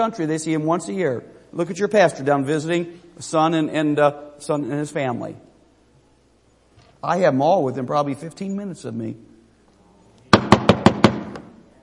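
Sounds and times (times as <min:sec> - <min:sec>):
speech: 0:00.0 - 0:05.5, 0:07.0 - 0:09.3
knocking by hand on a hard surface: 0:10.4 - 0:11.5.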